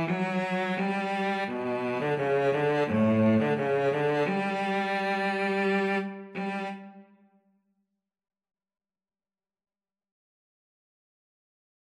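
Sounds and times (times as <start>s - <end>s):
cello duet: 0.0s - 7.1s.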